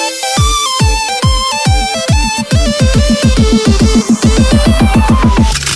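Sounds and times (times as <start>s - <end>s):
music buildup: 0.2s - 5.6s.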